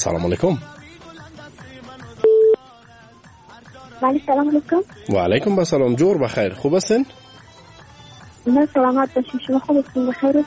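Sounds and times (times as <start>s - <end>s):
speech: 0.0s - 0.8s, 4.0s - 7.2s, 8.4s - 10.4s
telephone beep as a caller's line connects on a radio phone-in show: 2.2s - 2.6s.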